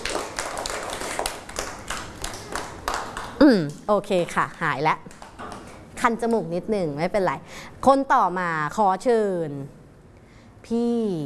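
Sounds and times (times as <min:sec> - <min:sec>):
people clapping: 0:00.0 - 0:05.8
speech: 0:03.5 - 0:05.1, 0:06.0 - 0:09.8, 0:10.7 - 0:11.2.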